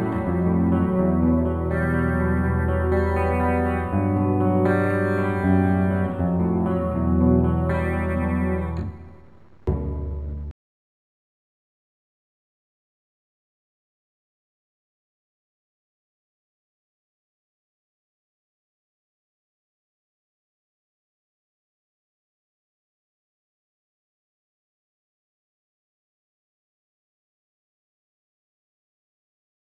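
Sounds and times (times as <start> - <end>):
slow acoustic music: 0.0 - 10.5.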